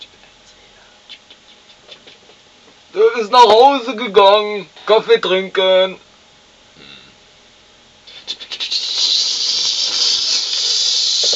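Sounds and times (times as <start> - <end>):
speech: 3.0 - 6.0
water hissing from a struck broken water pipe: 8.8 - 11.3.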